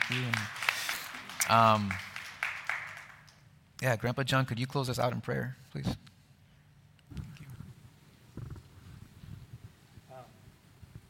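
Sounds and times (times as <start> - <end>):
applause: 0.0 - 3.5
speech: 0.1 - 0.6, 1.4 - 2.1, 3.8 - 6.1.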